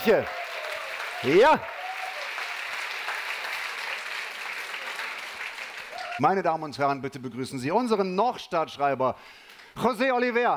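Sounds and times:
speech: 0.0s - 0.4s, 1.2s - 1.8s, 6.2s - 10.5s
crowd cheering and shouting: 0.0s - 2.6s, 5.9s - 6.3s
crowd applauding: 0.0s - 6.4s.

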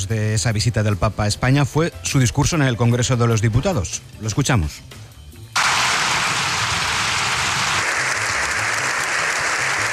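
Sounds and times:
speech: 0.0s - 5.0s
long ovation applause in parliament: 5.6s - 9.9s.

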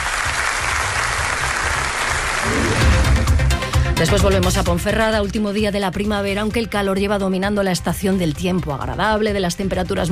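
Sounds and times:
applause: 0.0s - 3.4s
speech: 4.0s - 10.0s.

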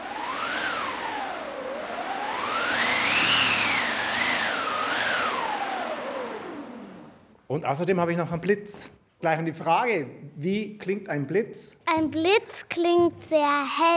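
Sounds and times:
wind machine sound effect: 0.0s - 7.2s
speech: 7.5s - 13.9s.

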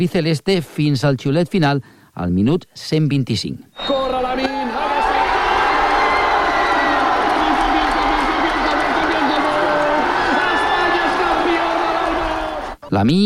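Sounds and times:
speech: 0.0s - 4.9s, 12.9s - 13.2s
stadium crowd of football fans cheering and chanting: 4.4s - 12.8s.

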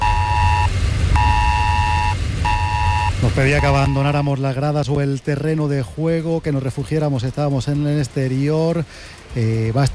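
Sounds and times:
emergency alert tone on mobile phones: 0.0s - 4.2s
constant low rumble: 0.0s - 9.9s
speech: 3.3s - 9.9s.

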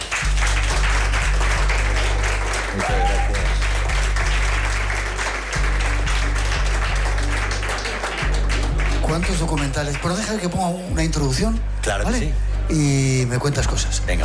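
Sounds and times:
audience applause: 0.0s - 10.5s
speech: 9.8s - 14.2s.

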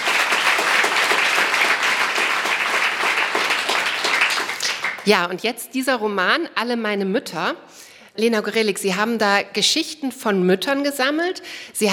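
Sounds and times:
audience applause: 0.0s - 5.1s
speech: 5.0s - 11.9s.

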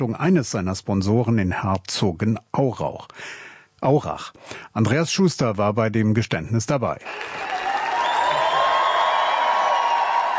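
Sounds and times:
speech: 0.0s - 7.7s
crowd cheering and applauding as athlete enters stage: 7.0s - 10.3s.

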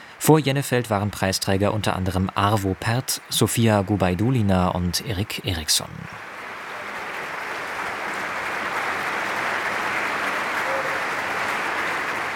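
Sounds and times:
speech: 0.3s - 6.3s
concert audience applause: 6.1s - 12.3s.

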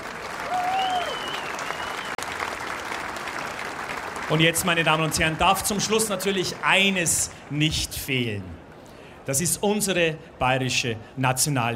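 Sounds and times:
audience applause: 0.0s - 7.6s
speech: 4.3s - 8.6s, 9.3s - 11.7s.

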